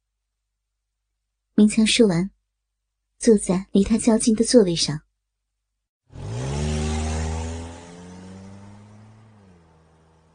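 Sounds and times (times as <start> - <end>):
speech: 1.6 - 2.4, 3.2 - 5.1
car engine starting and revving: 6.1 - 10.3.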